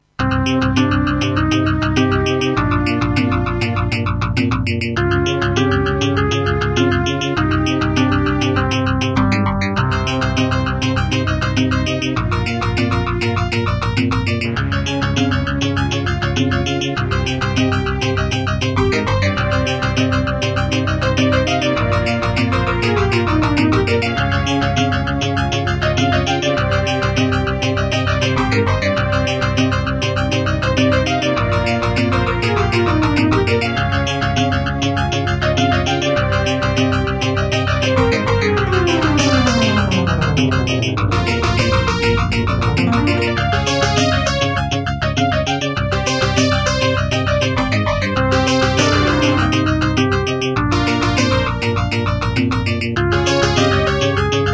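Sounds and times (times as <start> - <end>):
Creative Midi Blaster MB10 midi synthesizer music: 0.0 - 54.5.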